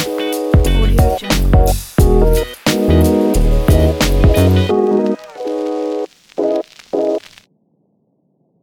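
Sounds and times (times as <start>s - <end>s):
smooth hip hop promo music: 0.0s - 6.1s.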